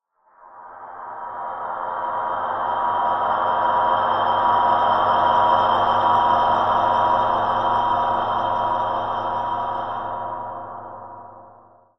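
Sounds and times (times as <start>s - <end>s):
Sylenth1 synth pad: 0.7s - 11.8s.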